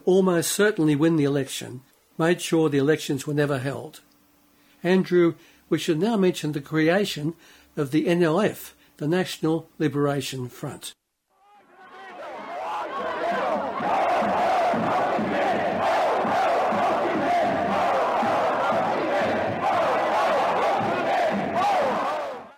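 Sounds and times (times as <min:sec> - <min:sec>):
speech: 0:00.0 - 0:04.1, 0:04.8 - 0:11.0
large protest crowd chanting a slogan: 0:11.4 - 0:22.5.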